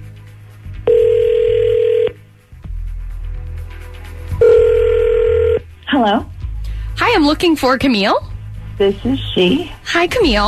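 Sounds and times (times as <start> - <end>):
long steady telephone dial-type tone: 0.9 - 2.2, 4.4 - 5.6
speech: 6.0 - 6.3, 7.1 - 10.4.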